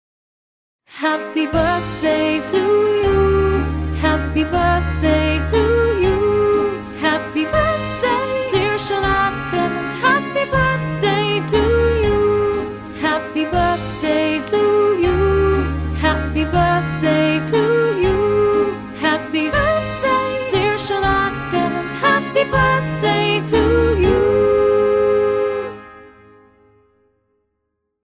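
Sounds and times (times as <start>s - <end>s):
birthday song: 0.9s - 26.1s.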